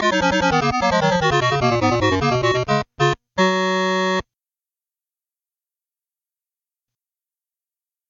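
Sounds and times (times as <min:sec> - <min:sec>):
panel music: 0:00.0 - 0:04.2.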